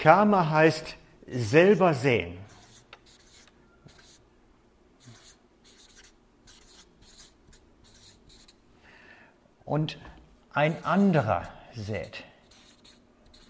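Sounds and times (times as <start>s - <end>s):
speech: 0.0s - 2.5s, 9.7s - 12.3s
pen scratching out handwriting: 2.5s - 4.2s, 5.0s - 8.6s, 12.0s - 13.4s.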